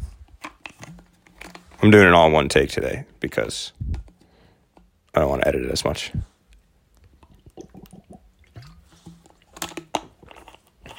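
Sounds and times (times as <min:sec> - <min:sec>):
speech: 0:01.8 - 0:03.8, 0:05.2 - 0:06.3
person drinking water: 0:06.4 - 0:10.9.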